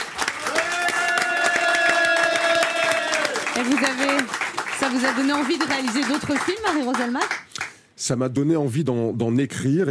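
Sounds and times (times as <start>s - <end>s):
applause: 0.0s - 7.9s
speech: 3.6s - 7.4s, 8.0s - 9.9s.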